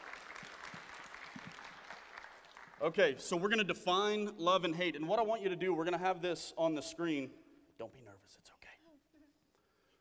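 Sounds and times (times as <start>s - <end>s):
audience applause: 0.0s - 3.0s
speech: 2.8s - 8.6s.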